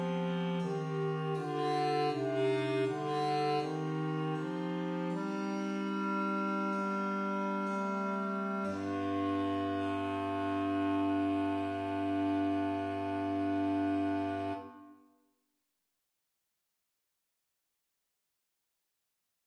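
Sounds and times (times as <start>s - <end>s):
bass: 0.0s - 14.8s.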